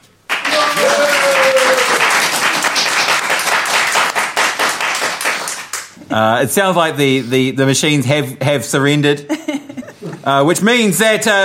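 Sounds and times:
audience applause: 0.3s - 6.0s
whistle or cheer: 0.5s - 2.0s
speech: 6.1s - 9.5s, 10.3s - 11.4s
laughter: 9.3s - 10.3s.

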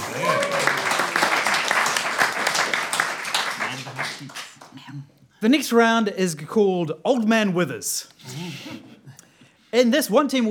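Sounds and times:
applause: 0.0s - 4.8s
speech: 5.4s - 8.8s, 9.7s - 10.4s.

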